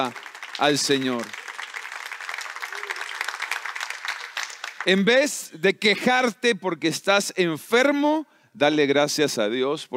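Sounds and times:
speech: 0:00.0 - 0:01.4, 0:04.8 - 0:09.9
audience applause: 0:00.0 - 0:05.1.

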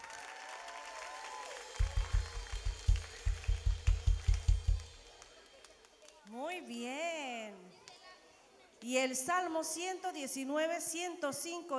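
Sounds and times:
crowd clapping in steady unison: 0:00.0 - 0:06.3
speech: 0:06.4 - 0:07.6, 0:08.8 - 0:11.7.

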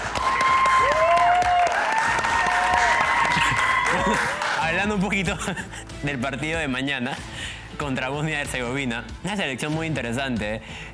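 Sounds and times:
audience applause: 0:00.0 - 0:04.9
laughter: 0:02.4 - 0:06.3
speech: 0:04.8 - 0:10.9.

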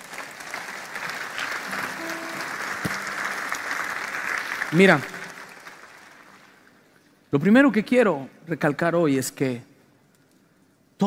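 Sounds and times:
audience applause: 0:00.0 - 0:06.9
speech: 0:04.7 - 0:05.1, 0:07.3 - 0:09.7.

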